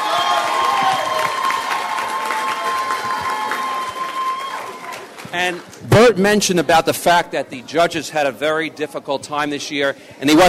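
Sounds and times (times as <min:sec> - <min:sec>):
audience applause for student performers: 0:00.0 - 0:05.8
speech: 0:05.3 - 0:10.4.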